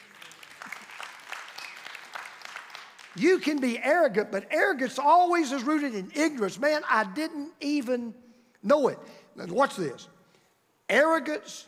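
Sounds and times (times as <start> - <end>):
audience clapping: 0.0 - 4.1
speech: 3.2 - 10.2, 10.9 - 11.6.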